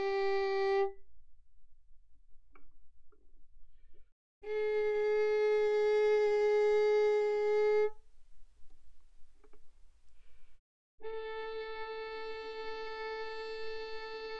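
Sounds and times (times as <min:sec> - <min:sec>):
violin bowed mezzo forte on G string: 0:00.0 - 0:01.0, 0:04.4 - 0:10.2, 0:11.0 - 0:14.3.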